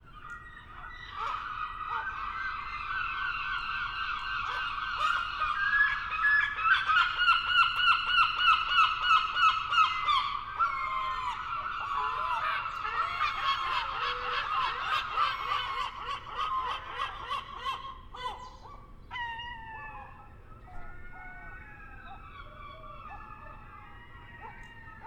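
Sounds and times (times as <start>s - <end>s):
adult herring gulls calling: 0.1s - 25.0s.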